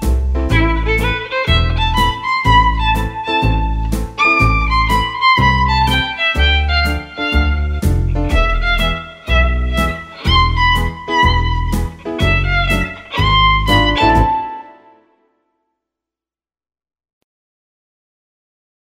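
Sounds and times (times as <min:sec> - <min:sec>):
swing music: 0:00.0 - 0:14.9.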